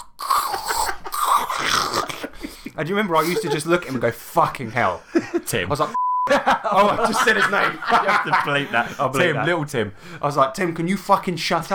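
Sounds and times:
voice imitating loud crunching of crisps: 0.0 - 2.6
laughter: 2.0 - 9.7
speech: 2.8 - 11.7.

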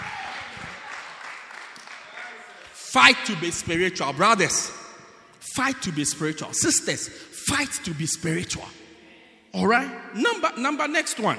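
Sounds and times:
audience clapping: 0.0 - 3.0
speech: 2.9 - 4.8, 5.5 - 8.8, 9.5 - 11.3.

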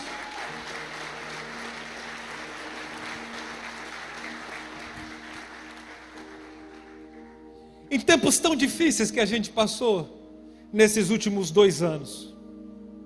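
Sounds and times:
audience applause: 0.0 - 7.1
speech: 7.9 - 12.3.

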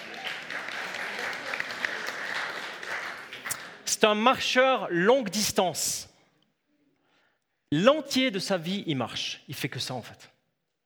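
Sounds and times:
audience applause: 0.0 - 3.8
speech: 4.0 - 6.1, 7.7 - 10.3.

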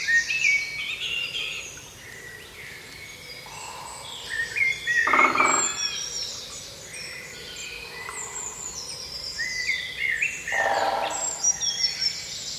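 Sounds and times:
birdsong on a spring morning in a wooded valley: 0.0 - 12.5
loud full bird calls: 3.4 - 6.5, 9.5 - 12.5.

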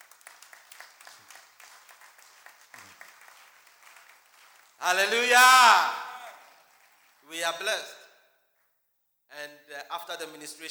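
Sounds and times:
audience applause: 0.0 - 7.2
speech: 4.8 - 6.0, 7.3 - 8.0, 9.3 - 10.6.

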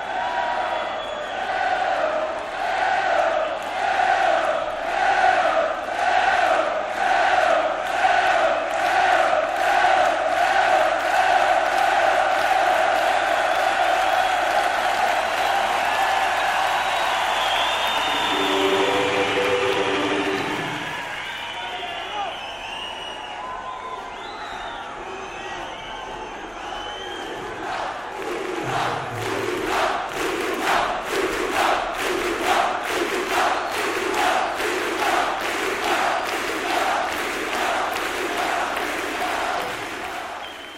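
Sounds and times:
loud stadium crowd chants: 0.0 - 22.8, 24.2 - 40.7.

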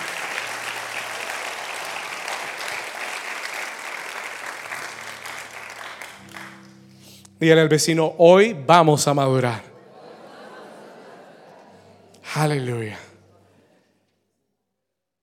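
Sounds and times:
audience applause: 0.0 - 6.8
speech: 7.4 - 9.7, 12.4 - 13.1
laughter: 9.7 - 13.9.

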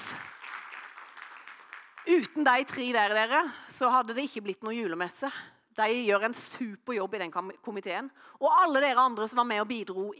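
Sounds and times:
audience applause: 0.0 - 2.1
speech: 2.1 - 10.1.

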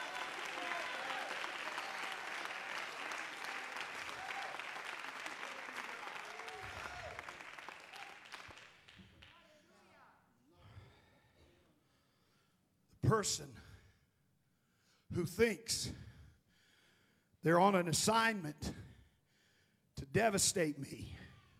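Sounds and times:
audience clapping hands: 0.0 - 9.6
speech: 13.1 - 13.6, 15.2 - 16.1, 17.4 - 18.8, 20.2 - 21.2.

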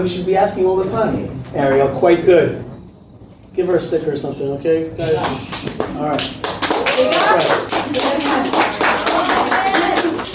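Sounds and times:
speech: 0.0 - 2.7, 3.6 - 6.4, 7.0 - 8.7
audience clapping: 5.2 - 10.3.

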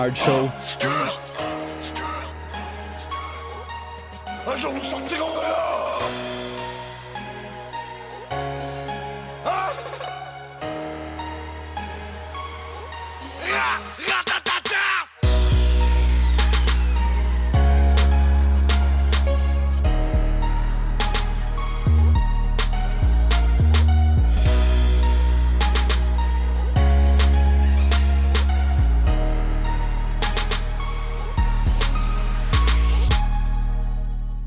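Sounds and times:
speech: 0.0 - 1.2, 4.4 - 6.3
rap track with heavy booming bass and punchy beat: 0.0 - 34.4.

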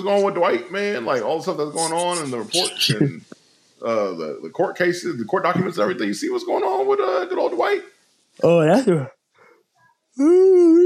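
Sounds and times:
speech: 0.0 - 9.2, 10.2 - 10.8
person yawning: 10.2 - 10.8.

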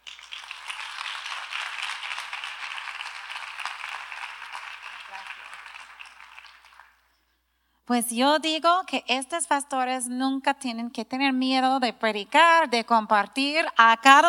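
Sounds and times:
audience applause: 0.0 - 7.0
speech: 7.9 - 14.2.

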